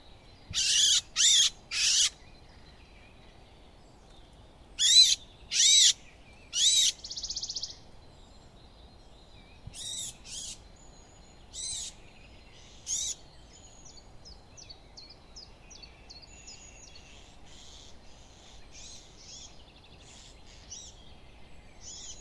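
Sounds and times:
Eurasian blackcap Sylvia atricapilla uttering rasping calls: 0:00.5 - 0:02.2, 0:04.8 - 0:06.0.

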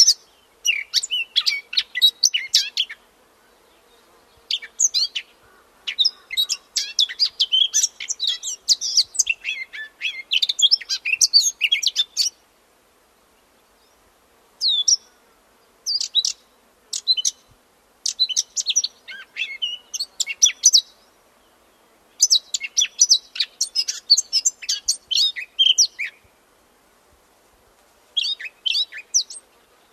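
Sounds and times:
Eurasian blackcap warbling song: 0:00.0 - 0:03.0, 0:04.4 - 0:12.4, 0:15.9 - 0:17.5, 0:18.1 - 0:21.0, 0:22.2 - 0:26.3, 0:28.2 - 0:29.4.

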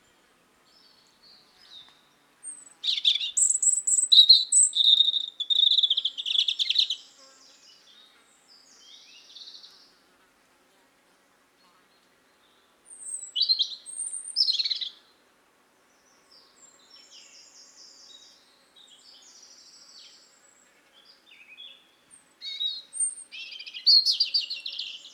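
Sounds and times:
European robin singing: 0:02.5 - 0:07.1, 0:12.9 - 0:15.0, 0:21.4 - 0:25.1.

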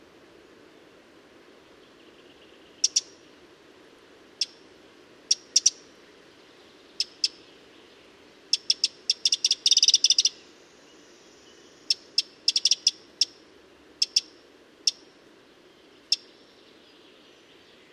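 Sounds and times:
faint steady background hiss: 0:00.0 - 0:17.9
Eurasian wren ticking calls: 0:02.8 - 0:03.2, 0:05.3 - 0:05.8, 0:08.5 - 0:10.4, 0:11.9 - 0:13.4, 0:14.0 - 0:15.1, 0:16.1 - 0:16.3.

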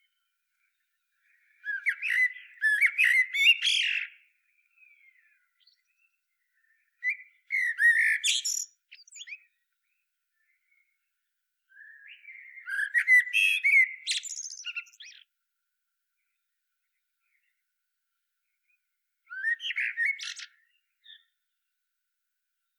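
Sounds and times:
Eurasian blackbird singing: 0:00.0 - 0:11.0, 0:11.7 - 0:15.3, 0:18.6 - 0:21.5.

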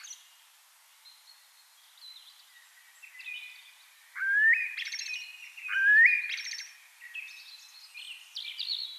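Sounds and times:
Eurasian blackbird Turdus merula singing: 0:02.0 - 0:08.9.

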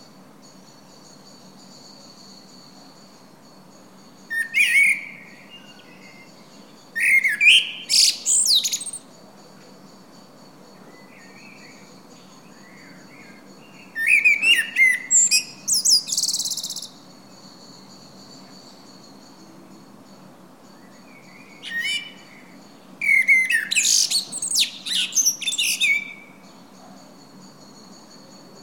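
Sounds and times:
faint background whistling: 0:00.0 - 0:28.6
Common blackbird song: 0:04.3 - 0:09.0, 0:10.9 - 0:17.0, 0:20.8 - 0:26.6.

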